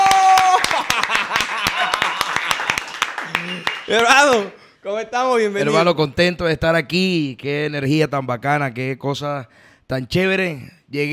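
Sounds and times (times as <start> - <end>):
audience applause: 0.0 - 4.6
laughter: 0.5 - 3.9
speech: 3.9 - 11.1.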